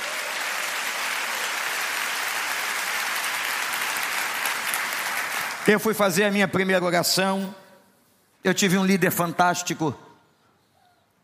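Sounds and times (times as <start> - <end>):
audience applauding: 0.0 - 6.0
speech: 5.6 - 7.6, 8.4 - 10.1.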